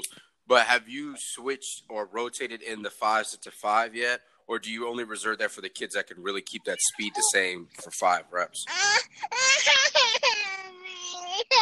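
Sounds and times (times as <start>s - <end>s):
speech: 0.5s - 10.2s
toddler girl crying: 8.7s - 11.5s.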